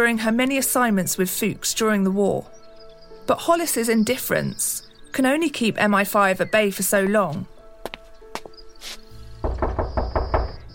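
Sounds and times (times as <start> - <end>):
speech: 0.0 - 2.6, 3.3 - 7.5
low tonal background: 0.0 - 10.7
knocking on the door of a house in a Cotswolds village: 9.4 - 10.7.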